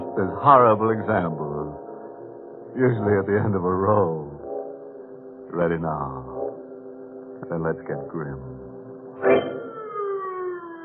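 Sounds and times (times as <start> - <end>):
speech: 0.2 - 1.6, 2.8 - 4.3, 5.5 - 6.3, 7.4 - 8.6, 9.2 - 9.6
siren wailing: 9.3 - 10.8.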